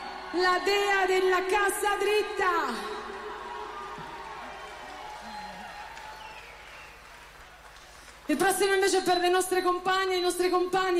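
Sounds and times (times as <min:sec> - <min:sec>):
audience applause and cheering: 0:00.0 - 0:08.4
speech: 0:00.3 - 0:03.0, 0:08.3 - 0:10.9.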